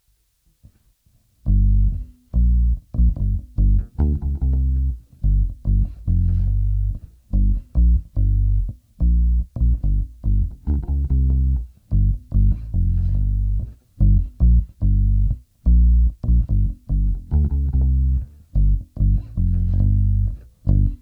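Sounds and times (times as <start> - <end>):
bass: 1.4 - 21.0.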